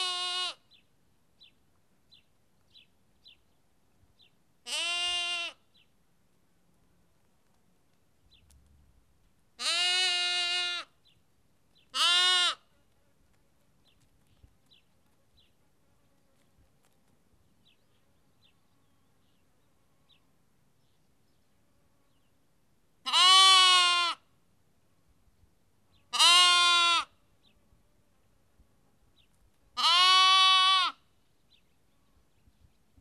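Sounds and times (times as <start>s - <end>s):
sheep lamb bleating in Kakopetria Cyprus: 0.0s - 0.6s, 4.6s - 5.6s, 9.6s - 10.9s, 11.9s - 12.6s, 23.0s - 24.2s, 26.1s - 27.1s, 29.8s - 31.0s.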